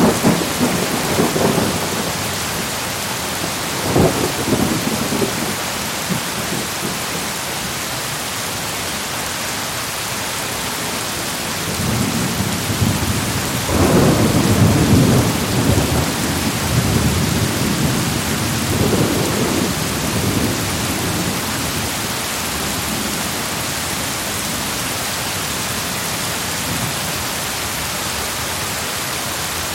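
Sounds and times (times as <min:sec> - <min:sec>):
low thunder rumbling: 0:00.0 - 0:07.3, 0:11.6 - 0:23.6
steady rain hissing in a thunderstorm: 0:00.0 - 0:29.7.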